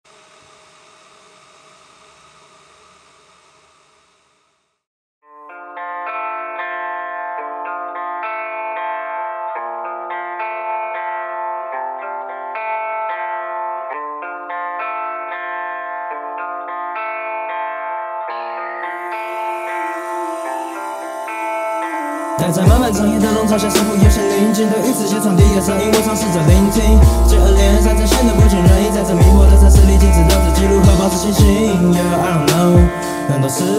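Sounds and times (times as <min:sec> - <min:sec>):
rap song by a new-generation rapper: 0:22.3 - 0:33.7
speech: 0:22.5 - 0:33.7.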